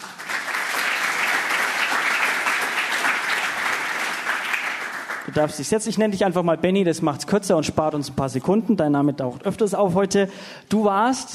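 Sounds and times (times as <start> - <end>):
audience applause: 0.0 - 5.5
speech: 5.3 - 11.3.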